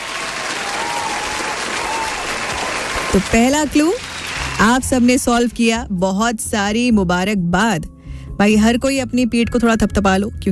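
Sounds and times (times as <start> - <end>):
crowd applauding listeners who guessed saffron in a quiz: 0.0 - 5.3
speech: 3.1 - 4.0, 4.6 - 10.5.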